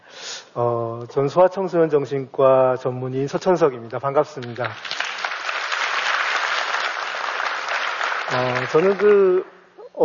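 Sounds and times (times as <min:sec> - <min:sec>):
speech: 0:00.5 - 0:04.9, 0:08.4 - 0:10.0
audience applause: 0:04.5 - 0:09.4.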